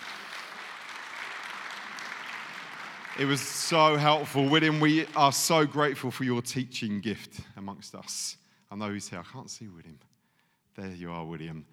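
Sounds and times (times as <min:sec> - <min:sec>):
audience applause: 0:00.0 - 0:05.7
speech: 0:03.1 - 0:10.1, 0:10.8 - 0:11.7.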